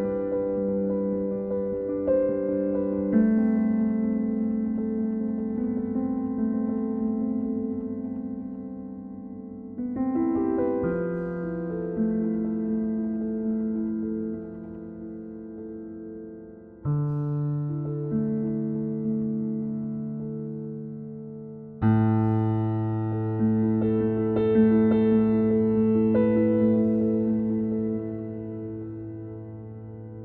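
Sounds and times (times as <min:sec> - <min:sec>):
Steinway D grand piano recorded inside: 0:00.0 - 0:30.2.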